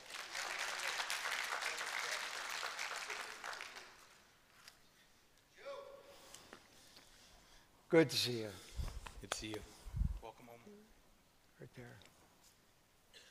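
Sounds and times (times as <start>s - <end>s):
audience clapping for a volunteer: 0.0s - 4.6s
speech: 7.9s - 9.8s.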